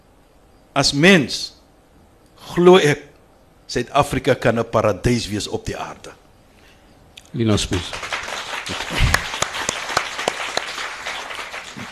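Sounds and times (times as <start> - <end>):
speech: 0.8 - 1.6, 2.5 - 3.1, 3.7 - 6.2, 7.3 - 8.1, 8.7 - 9.2
audience applause: 7.8 - 11.9.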